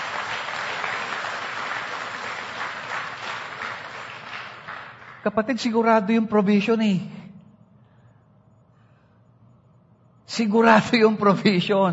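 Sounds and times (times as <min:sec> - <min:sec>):
church congregation clapping in praise of the Lord: 0:00.0 - 0:05.6
speech: 0:05.2 - 0:07.2, 0:10.4 - 0:11.9.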